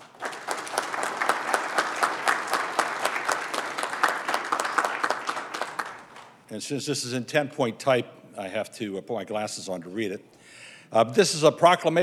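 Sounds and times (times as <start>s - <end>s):
round of applause: 0.0s - 6.4s
speech: 6.5s - 12.0s.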